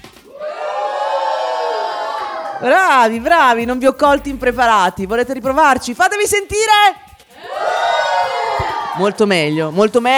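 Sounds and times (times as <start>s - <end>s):
studio audience cheering and shouting at a live radio show in Milan: 0.3s - 3.2s, 7.4s - 9.5s
speech: 2.6s - 7.0s, 9.0s - 10.1s.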